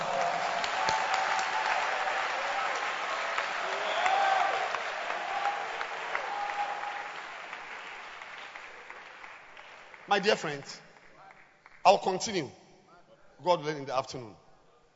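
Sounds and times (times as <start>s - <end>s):
audience clapping and applauding: 0.0s - 11.8s
speech: 10.1s - 10.8s, 11.9s - 12.6s, 13.4s - 14.4s.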